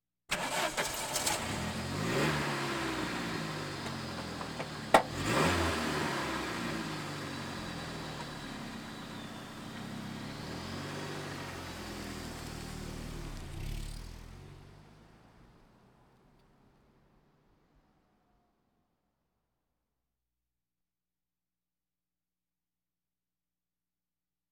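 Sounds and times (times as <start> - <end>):
various automobiles: 0.3 - 18.5.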